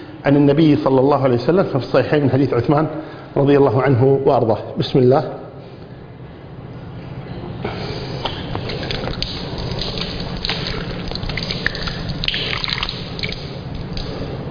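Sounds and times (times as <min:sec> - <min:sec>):
speech: 0:00.2 - 0:05.4
water pouring and splashing during Islamic ritual ablution (wudu): 0:08.2 - 0:14.2.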